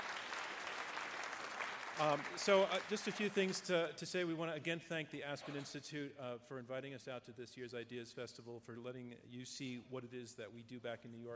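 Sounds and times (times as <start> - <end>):
audience round of applause: 0.0 - 3.6
speech: 2.0 - 11.3.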